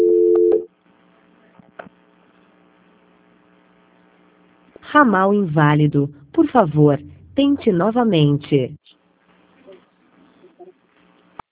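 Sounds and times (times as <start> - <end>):
telephone line tone during a call transfer: 0.0 - 0.7
speech: 4.9 - 8.9.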